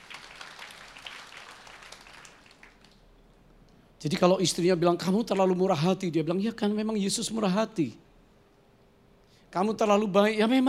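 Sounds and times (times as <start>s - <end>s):
audience applause: 0.0s - 3.0s
speech: 4.0s - 8.1s, 9.5s - 10.6s.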